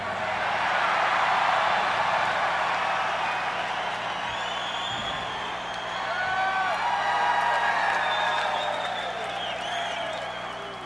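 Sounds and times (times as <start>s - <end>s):
large crowd cheering: 0.0s - 10.8s
shrill whistles: 2.9s - 6.6s, 7.8s - 10.8s.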